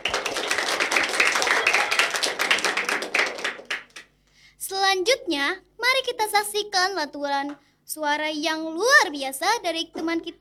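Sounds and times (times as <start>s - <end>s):
applause: 0.0s - 4.2s
speech: 5.0s - 10.3s.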